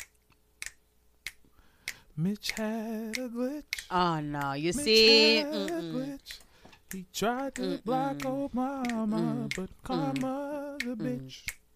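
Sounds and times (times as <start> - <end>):
fingers snapping: 0.0 - 3.9, 8.2 - 11.7
speech: 2.2 - 11.6.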